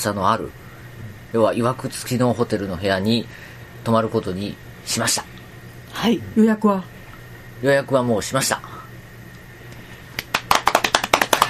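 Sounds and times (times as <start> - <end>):
speech: 0.0 - 0.6, 1.3 - 5.4, 6.0 - 7.0, 7.6 - 8.7
hand clapping: 10.1 - 11.4.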